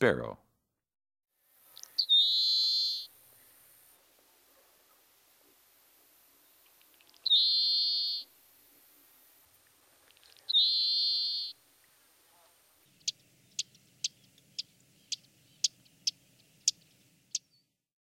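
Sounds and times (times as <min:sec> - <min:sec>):
Bachman's, Fox, Song, Vesper and Lincoln's sparrows: 0:01.6 - 0:03.7, 0:06.4 - 0:08.3, 0:10.0 - 0:11.6, 0:12.4 - 0:17.8.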